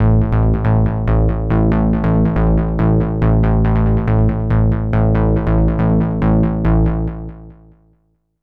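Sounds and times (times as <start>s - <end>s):
hard trance bass: 0.0s - 7.3s.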